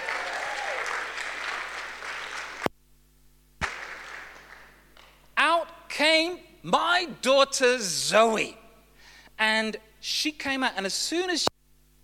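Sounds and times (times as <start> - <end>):
audience applause: 0.0 - 2.7, 3.6 - 4.8
speech: 6.1 - 8.6, 9.4 - 11.5.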